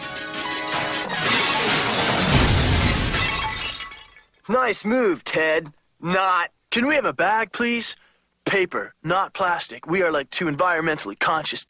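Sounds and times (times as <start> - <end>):
ceramic vase shattering: 1.2 - 4.4
speech: 4.5 - 11.6.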